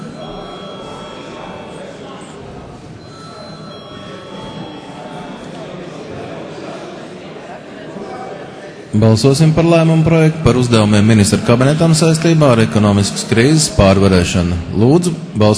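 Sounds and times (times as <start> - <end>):
parliament voting bell ringing: 0.0 - 6.8
low murmur of voices: 0.0 - 15.5
speech: 8.9 - 15.5.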